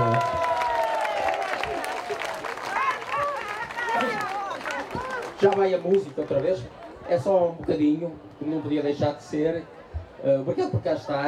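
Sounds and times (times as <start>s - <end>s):
audience applause: 0.0s - 6.9s
speech: 5.4s - 11.2s.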